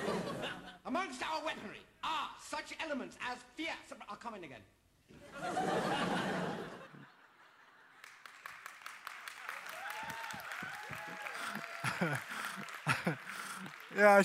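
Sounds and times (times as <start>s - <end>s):
laughter: 0.0s - 0.8s, 5.2s - 8.0s, 10.0s - 14.2s
speech: 0.9s - 6.4s, 12.0s - 12.3s, 13.9s - 14.2s
few people clapping: 7.9s - 14.2s.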